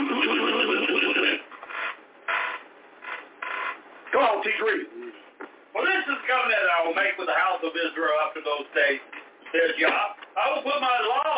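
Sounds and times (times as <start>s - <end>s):
voice imitating a jackhammer: 0.0s - 1.5s
speech: 4.2s - 5.0s, 5.8s - 11.3s.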